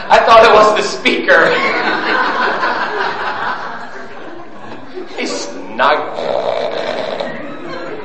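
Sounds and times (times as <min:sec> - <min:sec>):
laughter: 0:00.0 - 0:06.2, 0:06.8 - 0:08.0
speech: 0:00.1 - 0:02.6
sleeping person wheezing and snoring: 0:06.0 - 0:07.5.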